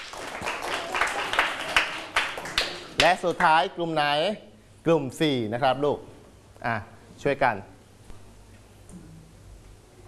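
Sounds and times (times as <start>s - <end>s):
children clapping in a classroom: 0.0s - 3.2s
speech: 3.0s - 7.7s.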